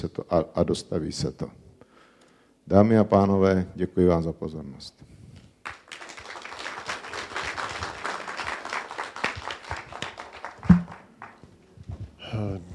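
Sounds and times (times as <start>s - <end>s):
speech: 0.0s - 1.6s, 2.7s - 5.1s, 12.4s - 12.7s
audience applause: 5.6s - 11.5s.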